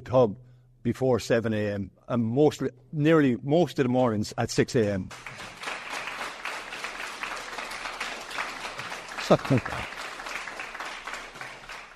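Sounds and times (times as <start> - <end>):
speech: 0.1 - 5.5, 9.3 - 10.0
audience clapping: 4.8 - 11.9.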